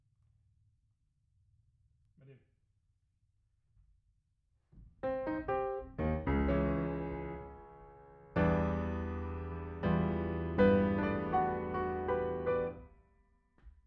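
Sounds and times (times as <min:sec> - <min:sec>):
piano: 0:05.0 - 0:13.1.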